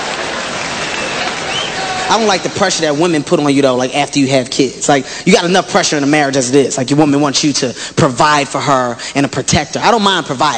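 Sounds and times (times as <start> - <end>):
audience clapping hands: 0.0 - 2.9
speech: 2.1 - 10.5.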